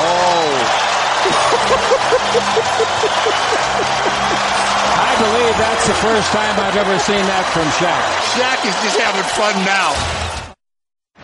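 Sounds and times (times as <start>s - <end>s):
basketball arena crowd cheering: 0.0s - 10.6s
laughter: 1.1s - 7.0s
speech: 5.6s - 10.3s.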